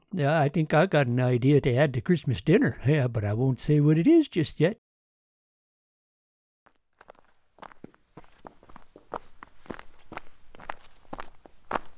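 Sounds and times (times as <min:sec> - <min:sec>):
speech: 0:00.2 - 0:04.8
footsteps on a narrow path through snow on a meadow: 0:06.7 - 0:11.9.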